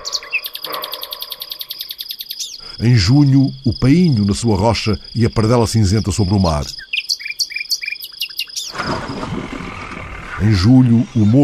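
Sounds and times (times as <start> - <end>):
nightingale singing: 0.0 - 8.8
speech: 2.8 - 6.8, 10.4 - 11.4.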